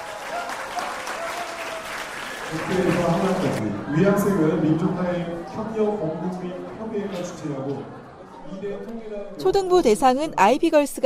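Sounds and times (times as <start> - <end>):
crowd clapping: 0.0 - 3.7
speech: 2.5 - 11.0.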